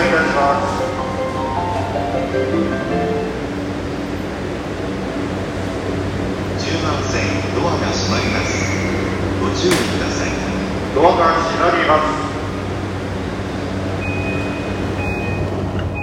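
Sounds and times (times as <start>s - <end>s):
train sounds north of Yokohama: 0.0s - 16.0s.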